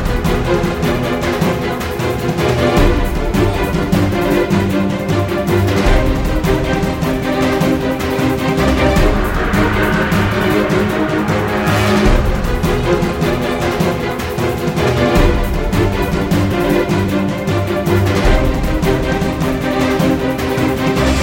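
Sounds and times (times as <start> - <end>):
battle background music: 0.0 - 21.2.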